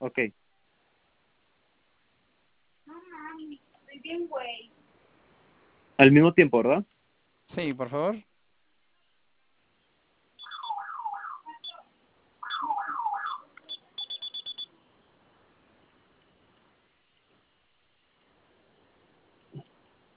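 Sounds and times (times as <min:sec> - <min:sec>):
speech: 0:00.1 - 0:00.5, 0:03.4 - 0:04.8, 0:06.0 - 0:06.9, 0:07.5 - 0:08.3
alarm system siren wailing: 0:10.4 - 0:11.8, 0:12.4 - 0:13.6
short beeps: 0:10.4 - 0:11.8, 0:12.4 - 0:14.7.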